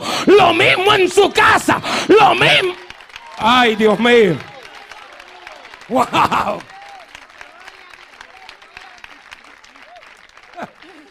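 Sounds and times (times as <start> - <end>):
man preaching: 0.0 - 4.5, 5.9 - 6.7
congregation applauding during a church service: 0.0 - 11.0
speech: 0.2 - 2.8, 3.4 - 4.5, 5.9 - 6.7
laughter: 0.3 - 4.6, 5.8 - 6.8, 9.3 - 11.0.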